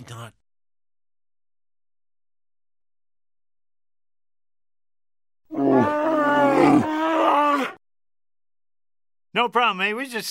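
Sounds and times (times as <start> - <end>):
speech: 0.0 - 0.4, 9.4 - 10.2
bear roaring: 5.5 - 7.8.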